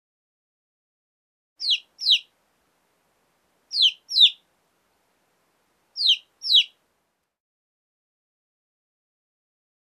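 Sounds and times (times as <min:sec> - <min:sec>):
birds twittering: 0:01.6 - 0:02.3, 0:03.7 - 0:04.4, 0:06.0 - 0:06.8.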